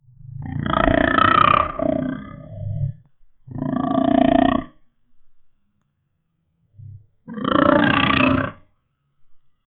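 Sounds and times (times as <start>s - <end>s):
dinosaur roar made from pig and reptile sounds: 0.1s - 4.8s, 6.8s - 8.7s.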